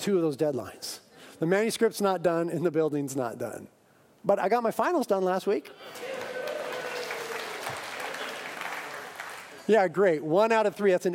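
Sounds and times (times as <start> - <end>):
speech: 0.0 - 6.2, 9.7 - 11.1
crowd applause: 5.9 - 9.7.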